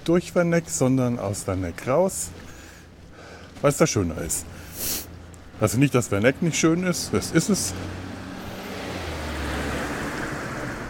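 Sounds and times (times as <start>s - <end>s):
speech: 0.0s - 2.5s, 3.6s - 5.0s, 5.6s - 8.1s
car driving past on a road leading out of a small town: 7.6s - 10.8s.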